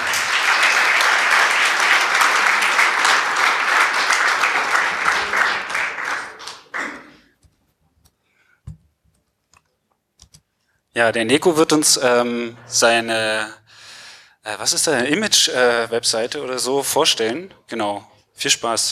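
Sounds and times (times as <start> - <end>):
audience applause: 0.0 - 7.3
speech: 11.0 - 13.6, 14.4 - 18.9.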